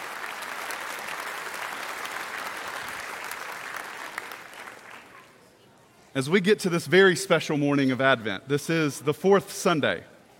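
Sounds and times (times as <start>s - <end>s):
audience applause: 0.0s - 5.3s
speech: 6.2s - 10.1s.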